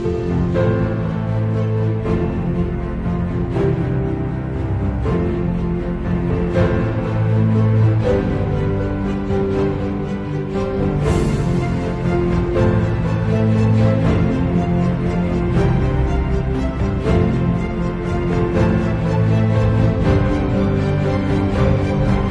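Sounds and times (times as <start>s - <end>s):
uplifting action music: 0.0s - 22.2s.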